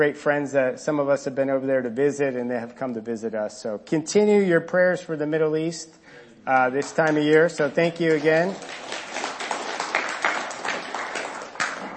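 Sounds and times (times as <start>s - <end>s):
speech: 0.0s - 9.0s
audience clapping: 6.6s - 11.9s.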